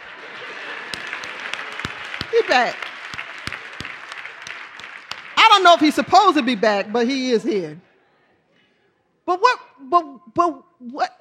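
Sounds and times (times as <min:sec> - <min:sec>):
audience hand clapping: 0:00.0 - 0:07.3
speech: 0:02.3 - 0:02.8, 0:05.6 - 0:07.9, 0:09.3 - 0:11.1.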